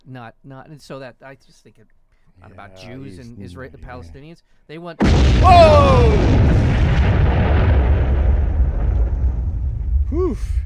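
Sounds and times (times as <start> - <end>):
speech: 0.1 - 7.1, 10.1 - 10.6
bomb explosion sound effect: 5.0 - 10.6.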